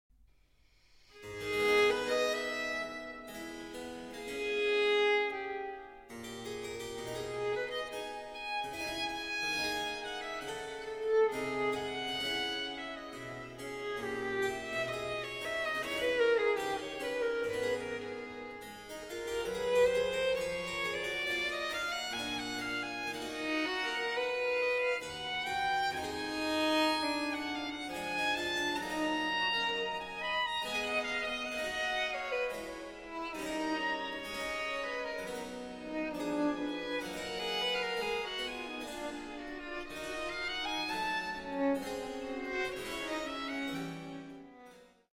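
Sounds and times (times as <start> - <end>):
two violins: 1.1 - 45.1.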